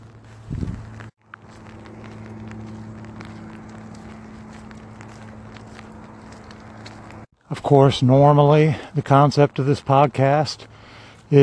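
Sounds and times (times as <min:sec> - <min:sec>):
light rain pattering on an umbrella: 0:00.1 - 0:07.2
speech: 0:07.5 - 0:10.7, 0:11.3 - 0:11.4.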